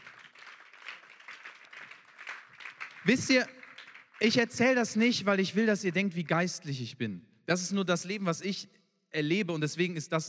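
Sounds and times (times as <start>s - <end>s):
crowd applauding: 0.0s - 4.8s
speech: 3.0s - 3.6s, 4.2s - 10.2s.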